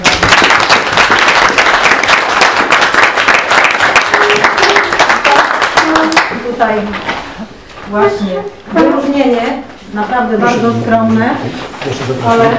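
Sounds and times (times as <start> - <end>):
audience applause: 0.0 - 6.4
speech: 6.6 - 7.1, 7.9 - 12.5.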